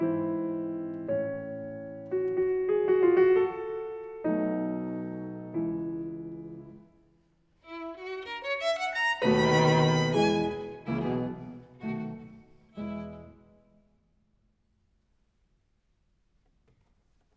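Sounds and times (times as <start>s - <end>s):
piano trio andante: 0.0s - 6.9s, 7.7s - 13.4s.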